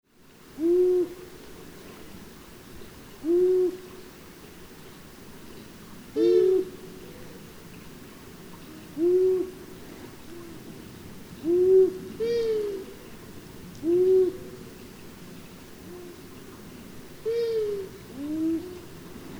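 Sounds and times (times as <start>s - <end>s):
long-eared owl calls: 0.6s - 1.3s, 3.2s - 3.9s, 6.2s - 7.4s, 8.7s - 9.7s, 11.4s - 13.2s, 13.8s - 14.6s, 17.2s - 19.0s.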